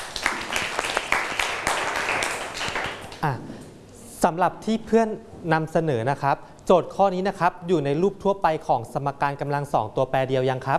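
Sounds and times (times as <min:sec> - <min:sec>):
classroom applause: 0:00.0 - 0:03.2
speech: 0:03.2 - 0:03.5, 0:04.2 - 0:10.7.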